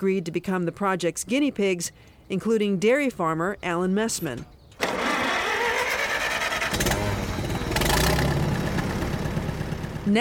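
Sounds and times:
speech: 0.0s - 5.0s
makeshift irrigation water pump engine starting: 4.8s - 10.0s.

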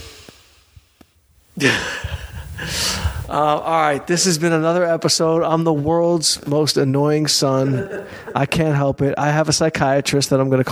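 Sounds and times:
deep inhale through the nose as a breathing exercise: 0.0s - 4.1s
speech: 1.6s - 2.0s, 2.6s - 10.7s
laughter: 1.6s - 10.7s.

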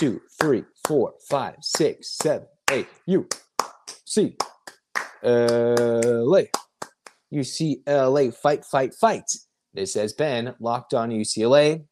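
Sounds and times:
speech: 0.0s - 3.4s, 4.1s - 4.5s, 5.2s - 6.6s, 7.3s - 11.8s
UCLA fans rhythmic hand clapping: 0.0s - 7.3s.

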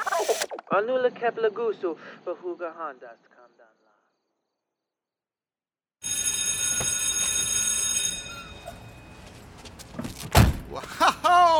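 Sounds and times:
speech: 0.7s - 3.6s, 10.7s - 11.5s
school period bell ringing: 6.0s - 9.8s
laughter: 10.7s - 11.5s.

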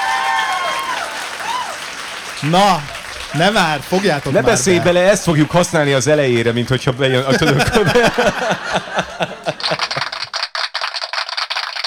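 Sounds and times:
audience clapping: 0.0s - 11.8s
laughter: 0.8s - 10.3s
person's voice rising over applause: 2.4s - 8.4s
speech: 2.4s - 10.1s.

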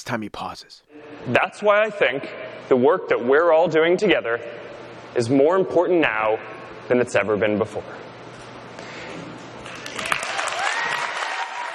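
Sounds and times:
speech: 0.0s - 4.6s, 5.2s - 8.1s
audience applause: 9.7s - 11.7s.

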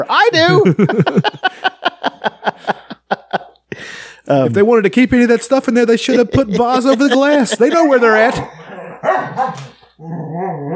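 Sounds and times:
speech: 0.0s - 1.7s, 4.3s - 10.2s
laughter: 0.4s - 3.7s, 4.5s - 8.7s
dogs barking while fighting: 8.1s - 9.9s
dog growling while fighting: 8.3s - 10.7s.

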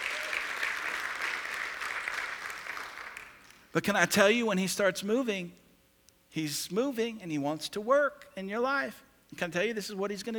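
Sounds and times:
audience applause: 0.0s - 3.4s
speech: 3.7s - 5.6s, 6.3s - 10.3s.

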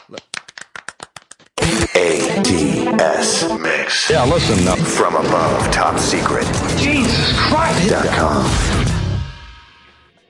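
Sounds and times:
crowd golf clap: 0.0s - 1.5s
speech: 2.0s - 8.9s.

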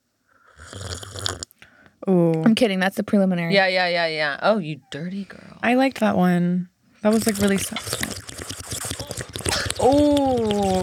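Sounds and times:
person slurping a drink: 0.4s - 1.5s, 7.1s - 10.8s
speech: 2.0s - 8.1s, 9.8s - 10.8s.

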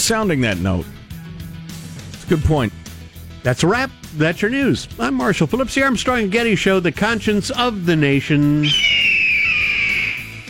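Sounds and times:
speech: 0.1s - 1.0s, 2.3s - 2.8s, 3.4s - 9.0s
bald eagle call: 8.6s - 10.4s.

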